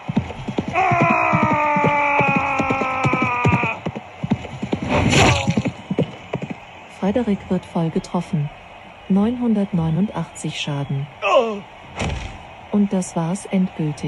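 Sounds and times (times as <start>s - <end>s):
horse galloping in the video game Rittermanager: 0.0s - 8.8s
speech: 7.1s - 14.0s.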